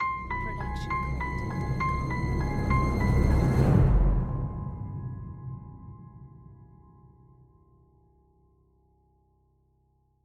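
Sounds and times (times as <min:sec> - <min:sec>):
mysterious ident jingle: 0:00.0 - 0:07.3.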